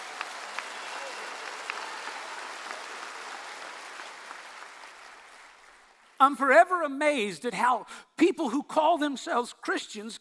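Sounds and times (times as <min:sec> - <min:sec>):
audience clapping hands: 0:00.0 - 0:06.3
speech: 0:06.2 - 0:10.1.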